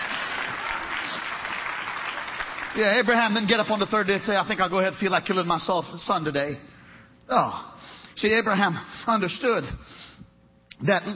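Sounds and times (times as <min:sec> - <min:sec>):
audience clapping hands: 0:00.0 - 0:04.7
speech: 0:02.8 - 0:06.7, 0:07.3 - 0:10.0, 0:10.8 - 0:11.1.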